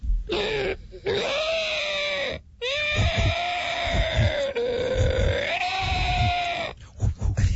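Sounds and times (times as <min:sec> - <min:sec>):
imitated pterodactyl screech: 0:00.3 - 0:06.8
low grunting: 0:03.0 - 0:07.4.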